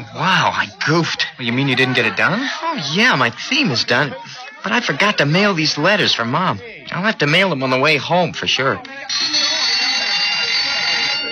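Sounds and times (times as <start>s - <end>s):
laughter: 0.0s - 6.8s, 8.6s - 11.3s
speech: 0.0s - 9.4s
school bell ringing: 8.9s - 11.3s.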